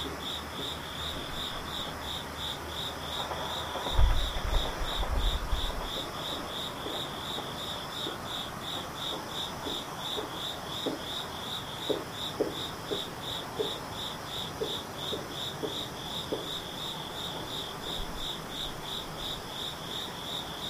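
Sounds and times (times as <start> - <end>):
insects chirping: 0.0 - 20.6
low rumble and thump: 3.8 - 6.0.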